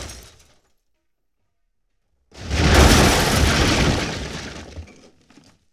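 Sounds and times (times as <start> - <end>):
explosion: 2.4 - 5.0.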